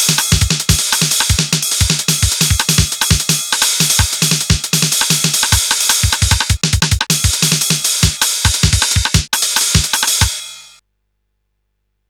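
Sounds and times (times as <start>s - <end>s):
TR707 drum machine noise beats: 0.0s - 10.8s.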